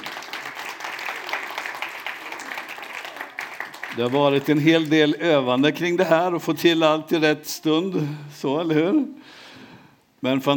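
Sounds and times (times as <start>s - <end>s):
audience applause: 0.0s - 5.0s
speech: 4.0s - 9.4s, 10.2s - 10.5s.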